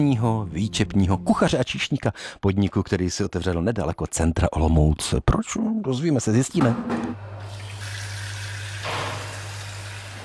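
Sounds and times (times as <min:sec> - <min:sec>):
speech: 0:00.0 - 0:07.5
tap water running to chill a beer glass: 0:07.4 - 0:10.2.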